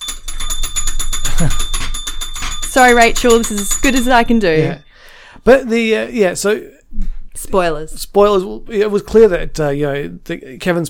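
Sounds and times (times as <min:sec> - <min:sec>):
spoiler bell ringing: 0:00.0 - 0:05.7
speech: 0:01.4 - 0:01.7, 0:02.8 - 0:10.8.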